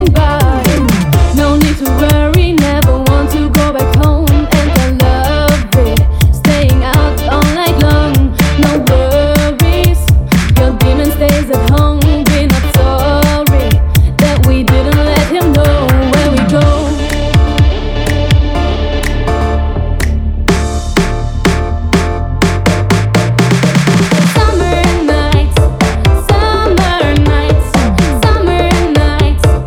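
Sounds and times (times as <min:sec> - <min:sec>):
funky disco remix: 0:00.0 - 0:29.6.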